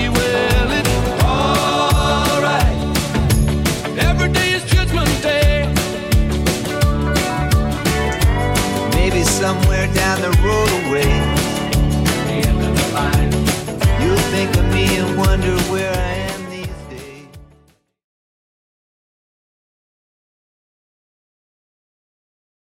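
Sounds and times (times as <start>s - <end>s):
1980s drum loop: 0.0s - 17.2s.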